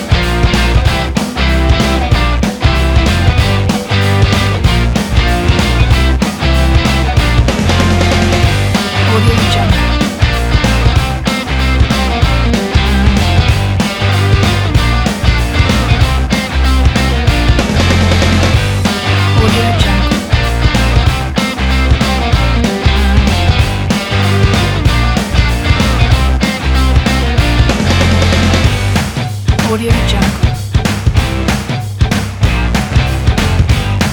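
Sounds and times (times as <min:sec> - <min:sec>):
upbeat indie garage rock music: 0:00.0 - 0:34.1.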